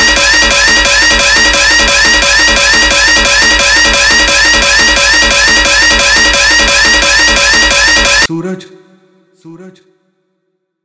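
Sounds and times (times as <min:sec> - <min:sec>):
hard vibration dance music beat: 0:00.0 - 0:08.3.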